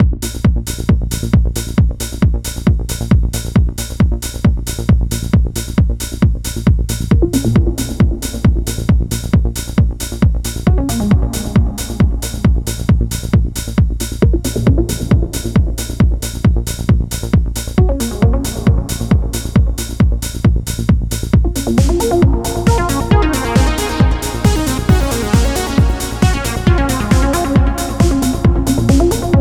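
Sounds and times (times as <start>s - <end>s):
trance music: 0.2s - 29.3s.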